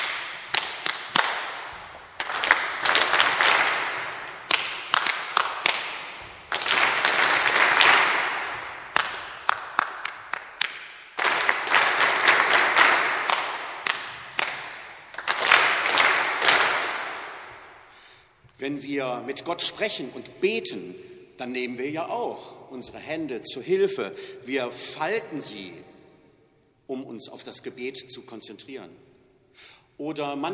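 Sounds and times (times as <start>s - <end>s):
rhythmic hand clapping, leader then audience echoing: 0.0s - 18.2s
speech: 18.6s - 25.9s, 27.2s - 30.5s.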